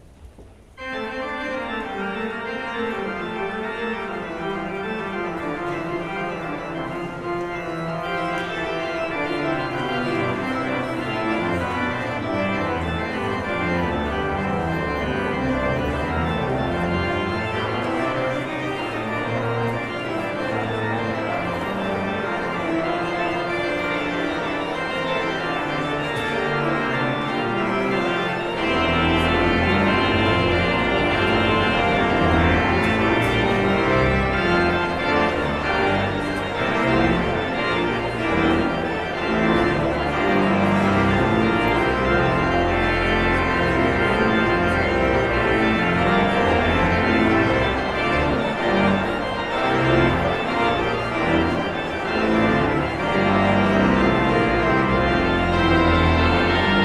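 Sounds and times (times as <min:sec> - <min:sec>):
postlude: 0:00.0 - 0:56.8.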